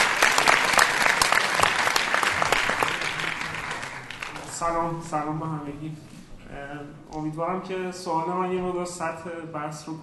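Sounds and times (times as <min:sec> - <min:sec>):
audience applause: 0:00.0 - 0:04.6
speech: 0:04.6 - 0:10.0.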